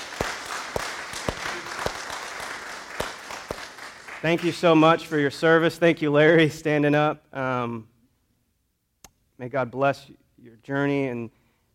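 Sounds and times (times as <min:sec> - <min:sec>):
audience applause: 0:00.0 - 0:04.8
speech: 0:04.2 - 0:07.9, 0:09.4 - 0:11.7.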